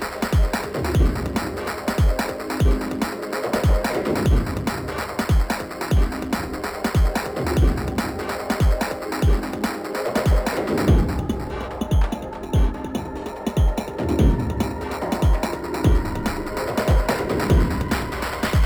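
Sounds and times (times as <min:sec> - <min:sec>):
intense industrial breakbeat music: 0:00.0 - 0:18.6.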